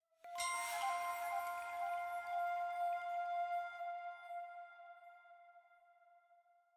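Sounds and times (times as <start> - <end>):
chime in F: 0.2 - 4.5
item jingle flute in F: 0.3 - 5.0.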